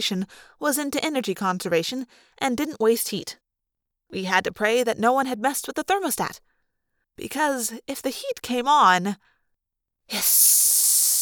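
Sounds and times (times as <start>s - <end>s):
speech: 0.0s - 3.4s, 4.1s - 6.5s, 7.2s - 9.3s, 10.1s - 11.0s
gas blowing out with a forceful hiss: 10.2s - 11.1s.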